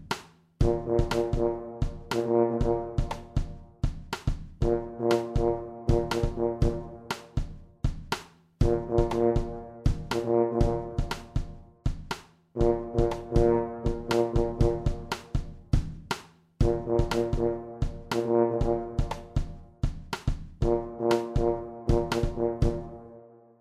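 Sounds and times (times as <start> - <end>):
drum kit: 0.0 - 22.9
trombone: 0.6 - 3.8, 4.6 - 7.6, 8.6 - 11.7, 12.6 - 15.6, 16.6 - 19.7, 20.6 - 23.4
tuba: 0.6 - 3.9, 4.6 - 7.7, 8.6 - 11.8, 12.6 - 15.8, 16.6 - 19.9, 20.6 - 23.5.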